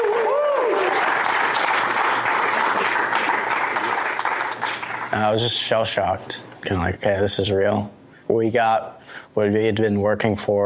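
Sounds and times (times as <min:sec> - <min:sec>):
cheering: 0:00.0 - 0:04.6
applause: 0:00.0 - 0:05.6
speech: 0:05.2 - 0:10.6.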